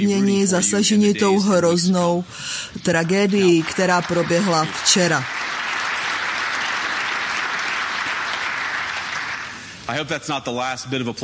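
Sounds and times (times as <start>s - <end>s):
speech: 0.0s - 5.5s, 9.9s - 11.2s
audience applause: 3.2s - 9.8s.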